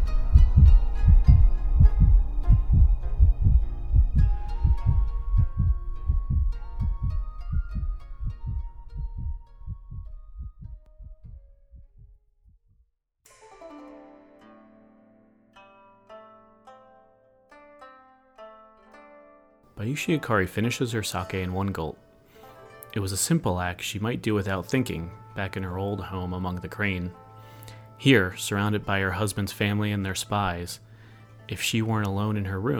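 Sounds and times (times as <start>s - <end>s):
soft sparse plucked tones: 0.0s - 10.9s, 13.3s - 32.7s
pounding heartbeat: 0.0s - 12.8s
speech: 19.9s - 22.0s, 22.9s - 27.2s, 28.0s - 30.8s, 31.5s - 32.7s.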